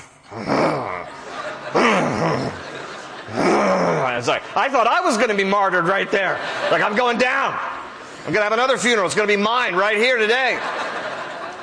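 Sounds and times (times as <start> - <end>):
single voice imitating an angry crowd's low rumbling growl: 0.0 - 2.7, 3.3 - 4.4
laughter: 0.4 - 8.2, 10.1 - 11.6
speech: 4.2 - 10.8.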